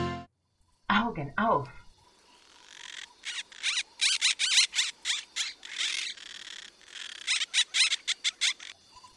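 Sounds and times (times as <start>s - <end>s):
speech: 1.1s - 1.8s
many birds singing in a jungle: 2.6s - 9.1s.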